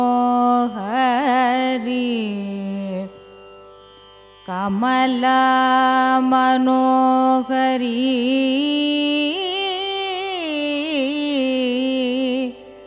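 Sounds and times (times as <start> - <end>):
carnatic raga music: 0.0 - 12.8.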